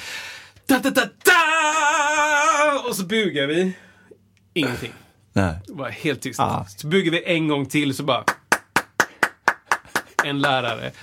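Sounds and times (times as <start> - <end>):
speech: 0.8 - 1.8, 2.9 - 3.9, 4.6 - 8.4, 10.2 - 11.0
hand clapping: 8.2 - 10.8.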